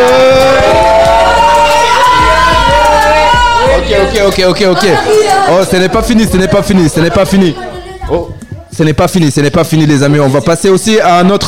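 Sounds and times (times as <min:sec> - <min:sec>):
audience applauding and cheering: 0:00.0 - 0:06.1
speech: 0:04.3 - 0:11.4.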